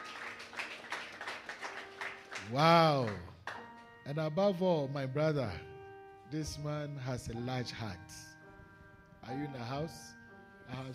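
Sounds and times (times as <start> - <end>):
group clapping hands: 0.0 - 3.9
speech: 2.5 - 3.3, 4.0 - 5.7, 6.3 - 8.2, 9.3 - 10.9.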